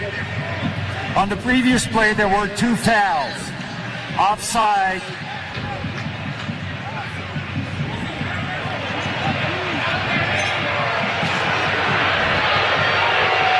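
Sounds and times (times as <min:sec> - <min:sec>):
large stadium crowd jeering: 0:00.0 - 0:13.5
speech: 0:01.2 - 0:03.5, 0:04.1 - 0:05.2.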